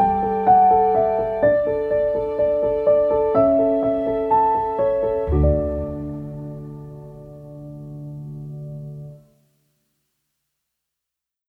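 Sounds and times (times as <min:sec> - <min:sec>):
motivated emotional piano music: 0:00.0 - 0:09.4.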